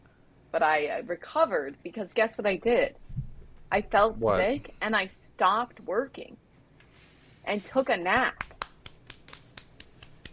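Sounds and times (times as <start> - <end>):
speech: 0.5 - 3.1, 3.7 - 6.4, 7.4 - 8.6
hand clapping: 8.1 - 10.3.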